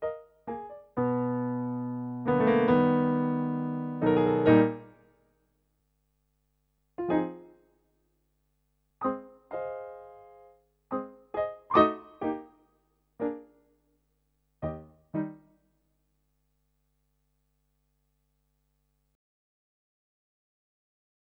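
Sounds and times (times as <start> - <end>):
solo piano: 0.0 - 5.1, 7.0 - 7.6, 9.0 - 12.6, 13.2 - 13.6, 14.6 - 15.5.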